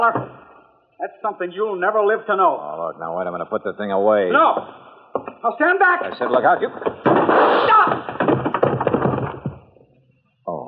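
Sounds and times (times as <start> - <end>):
speech: 0.0 - 0.4, 1.0 - 8.2
chair smashing on a man's head: 6.8 - 9.7.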